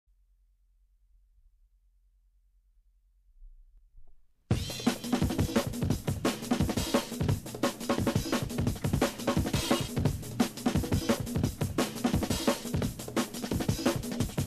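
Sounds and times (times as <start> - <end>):
drum and bass jungle and old skool music: 4.5 - 14.4.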